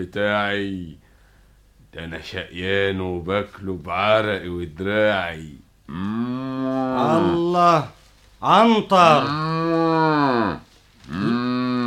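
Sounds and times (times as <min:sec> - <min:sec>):
speech: 0:00.0 - 0:01.0, 0:02.0 - 0:09.6
ox mooing: 0:05.9 - 0:07.5, 0:09.1 - 0:11.8.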